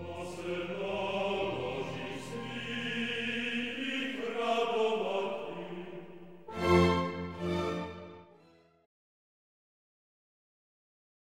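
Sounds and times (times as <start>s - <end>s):
chanting: 0.0s - 7.0s.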